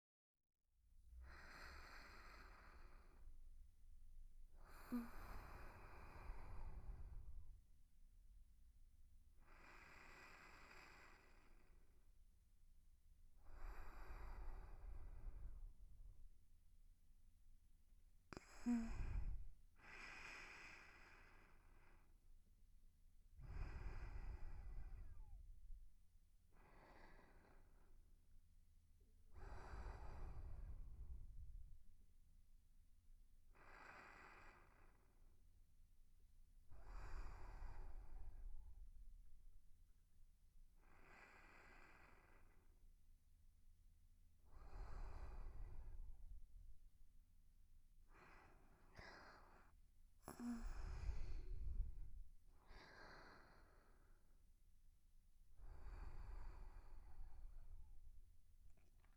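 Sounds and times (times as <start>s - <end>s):
sleeping breath: 1.2s - 3.4s, 4.6s - 7.6s, 9.4s - 12.0s, 13.4s - 16.1s, 18.3s - 22.1s, 23.4s - 25.8s, 26.5s - 27.9s, 29.4s - 31.8s, 33.5s - 35.2s, 36.7s - 39.0s, 40.8s - 42.8s, 44.4s - 46.6s, 48.0s - 54.3s, 55.5s - 59.1s.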